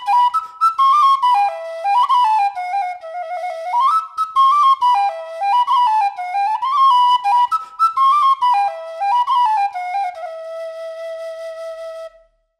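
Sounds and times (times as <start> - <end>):
whistle: 0.0 - 12.5.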